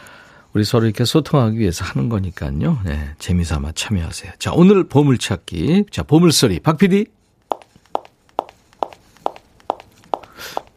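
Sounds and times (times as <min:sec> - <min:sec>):
speech: 0:00.5 - 0:07.2
high-heeled shoes clicking while walking: 0:07.5 - 0:10.7.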